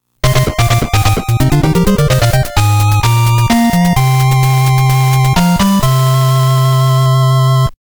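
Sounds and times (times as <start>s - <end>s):
fanfare: 0.2s - 7.4s.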